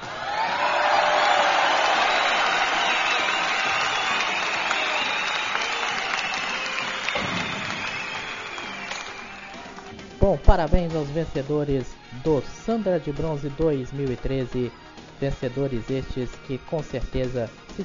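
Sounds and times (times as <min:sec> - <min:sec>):
crowd applause for award winners: 0:00.0 - 0:10.1
speech: 0:10.4 - 0:17.8.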